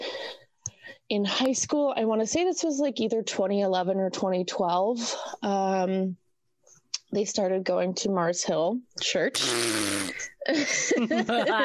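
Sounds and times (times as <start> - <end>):
speech: 1.1 - 6.2, 7.1 - 9.9, 10.5 - 11.6
fart noise sound effect: 9.4 - 10.3
laughter: 10.5 - 11.6.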